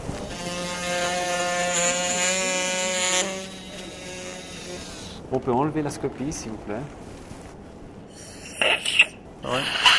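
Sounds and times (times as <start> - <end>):
surgical saw whirring: 0.2 - 5.2
speech: 5.3 - 7.1, 9.4 - 9.8.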